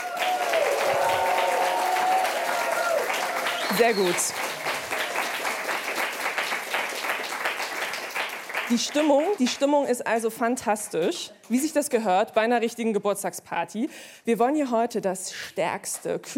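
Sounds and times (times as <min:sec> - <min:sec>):
children and adults cheering and applauding: 0:00.0 - 0:09.6
speech: 0:03.7 - 0:04.6, 0:08.7 - 0:16.3.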